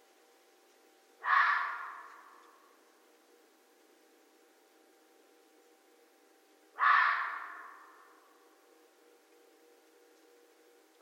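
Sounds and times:
red fox barking: 0:01.2 - 0:02.6, 0:06.8 - 0:08.2.

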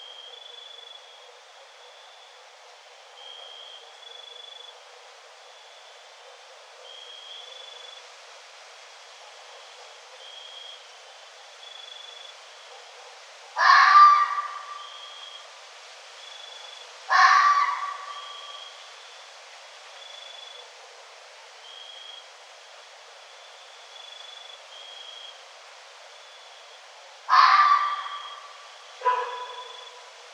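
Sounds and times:
red fox calling: 0:13.6 - 0:15.2, 0:17.1 - 0:18.8, 0:27.3 - 0:30.1.

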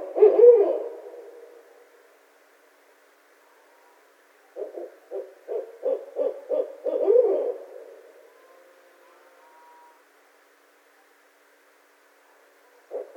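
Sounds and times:
barred owl hooting: 0:00.0 - 0:01.5, 0:03.4 - 0:10.1, 0:12.6 - 0:13.1.

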